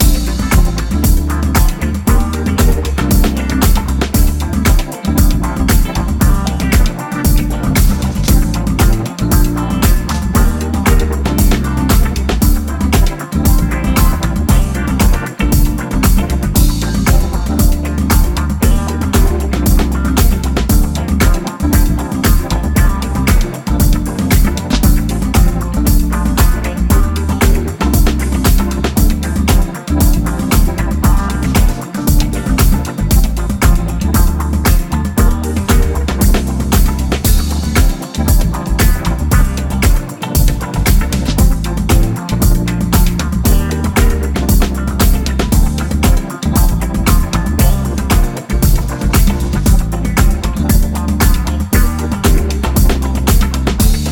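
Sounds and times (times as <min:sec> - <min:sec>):
instrumental music: 0:00.0 - 0:54.1.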